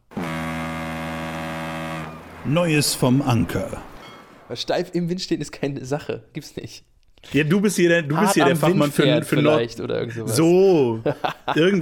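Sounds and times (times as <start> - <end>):
horn being sounded: 0.0 - 4.0
speech: 2.4 - 3.9, 4.5 - 11.7
laughter: 8.1 - 11.7.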